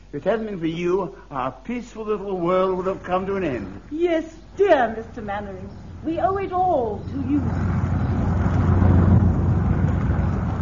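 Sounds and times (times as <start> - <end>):
speech: 0.1 - 7.9
aeroplanes taking off: 5.7 - 10.6.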